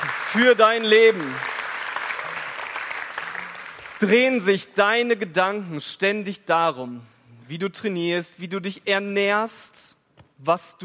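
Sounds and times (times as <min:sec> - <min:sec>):
crowd applauding: 0:00.0 - 0:04.4
speech: 0:00.3 - 0:01.5, 0:04.0 - 0:10.8.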